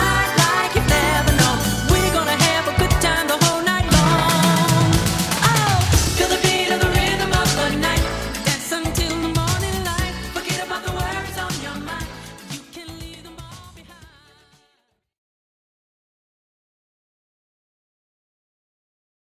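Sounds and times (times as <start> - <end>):
jazz music: 0.0 - 13.9.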